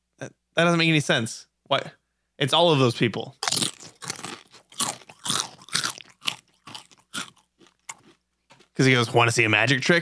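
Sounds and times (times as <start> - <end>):
speech: 0.2 - 3.4, 8.8 - 9.9
crunching on chips: 3.4 - 8.8.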